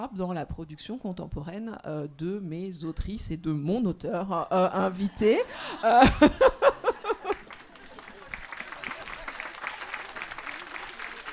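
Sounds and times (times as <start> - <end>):
speech: 0.0 - 6.6
laughter: 4.4 - 11.3
audience applause: 6.4 - 11.3.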